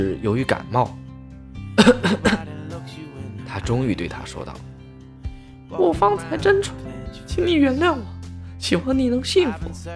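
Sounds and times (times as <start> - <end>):
speech: 0.0 - 1.0, 1.8 - 2.5, 3.5 - 4.7, 5.7 - 9.9
coughing: 1.8 - 2.6.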